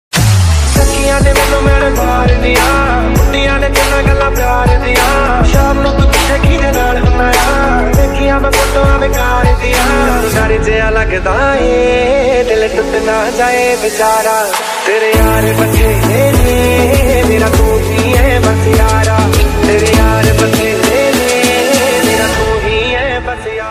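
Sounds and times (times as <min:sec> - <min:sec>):
Bollywood song: 0:00.1 - 0:23.6.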